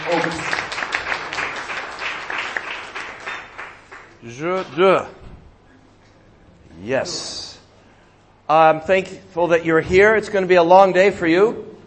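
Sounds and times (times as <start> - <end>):
audience applause: 0.0 - 4.2
speech: 0.1 - 0.6, 4.3 - 5.2, 6.9 - 7.4, 8.5 - 11.7.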